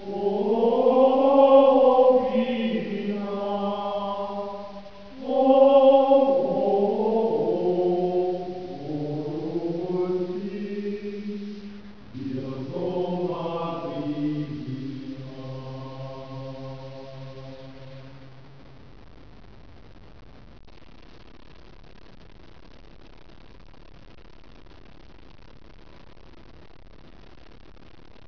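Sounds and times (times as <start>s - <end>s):
Gregorian chant sung by a schola: 0.0s - 18.2s.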